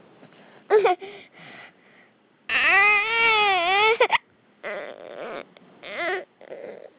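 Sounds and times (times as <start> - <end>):
hungry baby boy: 2.5 - 6.9.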